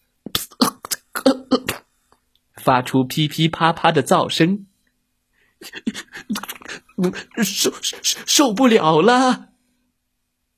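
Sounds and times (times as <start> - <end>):
voice imitating light coughing: 0.3 - 1.8, 5.6 - 8.0
speech: 2.6 - 4.7, 5.6 - 6.3, 7.0 - 9.5.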